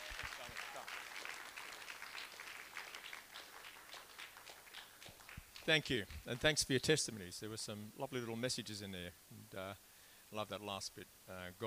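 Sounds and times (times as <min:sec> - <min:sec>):
audience cheering: 0:00.0 - 0:04.9
applause: 0:00.0 - 0:06.5
speech: 0:05.6 - 0:11.6.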